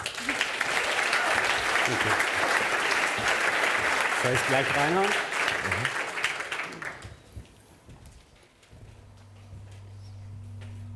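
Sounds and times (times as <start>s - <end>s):
audience applause: 0.0s - 7.2s
speech: 1.9s - 2.4s, 4.2s - 6.0s.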